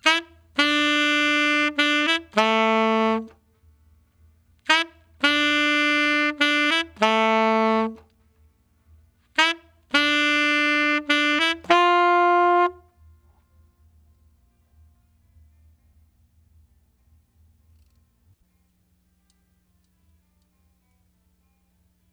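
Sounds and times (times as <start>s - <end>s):
saxophone: 0.0s - 3.5s, 4.6s - 8.1s, 9.3s - 13.0s.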